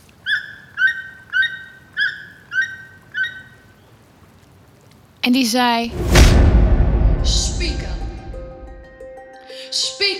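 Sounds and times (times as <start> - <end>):
toucan calling: 0.1 - 3.9
speech: 5.2 - 6.2, 7.3 - 8.0.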